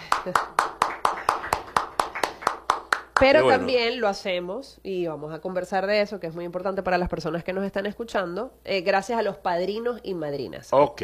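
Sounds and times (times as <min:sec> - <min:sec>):
audience applause: 0:00.0 - 0:03.6
speech: 0:00.2 - 0:00.6, 0:03.2 - 0:11.0.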